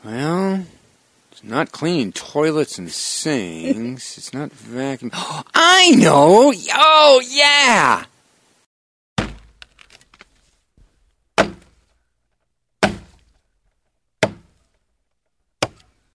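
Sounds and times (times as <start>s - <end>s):
speech: 0.0s - 0.7s, 1.4s - 8.1s
axe chopping wood: 9.2s - 9.6s, 11.4s - 11.8s, 12.8s - 13.3s, 14.2s - 14.6s, 15.6s - 15.9s.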